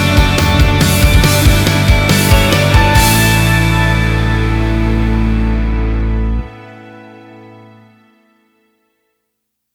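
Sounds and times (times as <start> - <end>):
uplifting teen rock music: 0.0 - 7.7.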